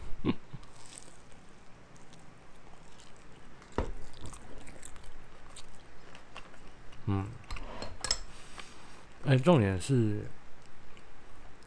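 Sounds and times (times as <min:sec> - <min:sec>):
chewing crispy fried lizardfish bites: 0:00.5 - 0:07.3
speech: 0:09.3 - 0:10.4.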